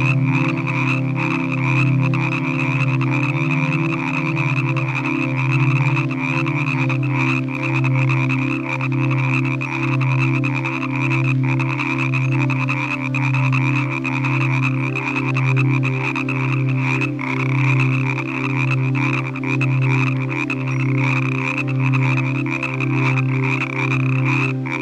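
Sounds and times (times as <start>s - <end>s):
frogs calling in a chorus in the evening: 0.0s - 24.8s.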